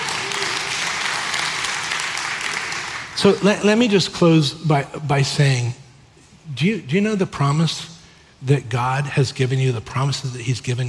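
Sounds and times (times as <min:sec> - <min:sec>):
crowd applauding: 0:00.0 - 0:03.5
speech: 0:03.2 - 0:05.8, 0:06.5 - 0:10.8.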